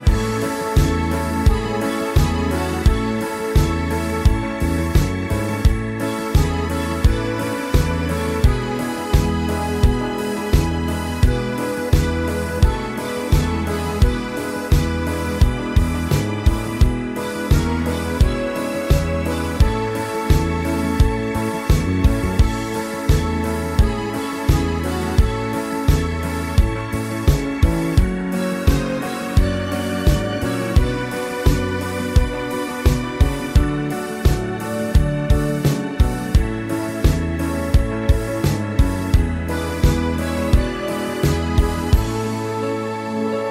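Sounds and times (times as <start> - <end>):
karaoke backing track: 0.0 - 43.4.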